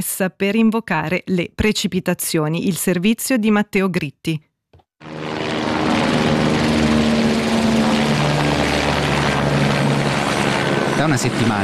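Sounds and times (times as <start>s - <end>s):
speech: 0.0s - 5.2s, 11.0s - 11.6s
helicopter engines scooping lake water for wildfire fronts: 5.0s - 11.6s.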